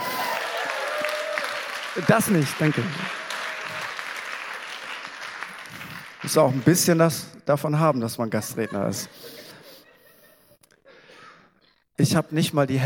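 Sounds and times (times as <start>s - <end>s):
audience applause: 0.0s - 6.9s
speech: 2.0s - 3.2s, 6.3s - 9.4s, 12.0s - 12.8s
laughter: 7.7s - 10.6s.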